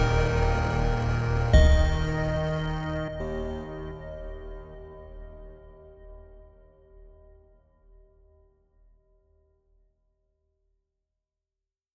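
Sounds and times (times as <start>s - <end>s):
chiptune music: 0.0s - 4.2s.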